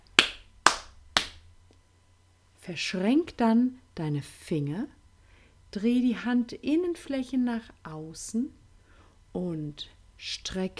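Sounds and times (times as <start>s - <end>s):
sharp hand claps: 0.1s - 1.5s
speech: 2.7s - 5.0s, 5.7s - 8.6s, 9.3s - 10.7s.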